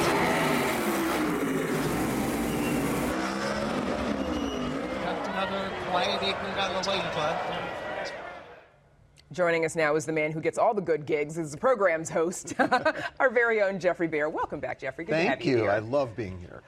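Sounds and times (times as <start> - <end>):
NASCAR race cars roaring along Chicago's lakefront: 0.0 - 8.3
speech: 5.5 - 8.2, 9.3 - 16.6.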